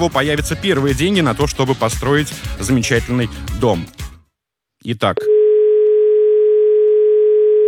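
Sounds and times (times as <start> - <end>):
speech: 0.0 - 4.0, 4.8 - 5.4
telephone dial tone: 5.3 - 7.6.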